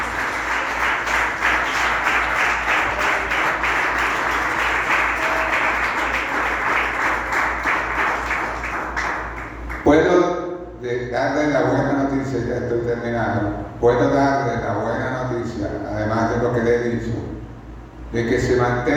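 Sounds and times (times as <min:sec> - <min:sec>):
audience applause: 0:00.0 - 0:09.8
speech: 0:10.9 - 0:17.3, 0:18.1 - 0:18.9.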